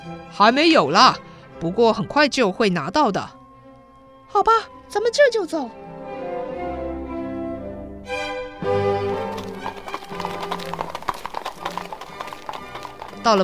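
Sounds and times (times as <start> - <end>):
speech: 0.0 - 3.4, 4.3 - 5.8, 13.2 - 13.4
sustained musical passage: 0.0 - 13.4
horse-drawn carriage hooves clip-clopping arriving at Briony Lodge: 8.6 - 13.4.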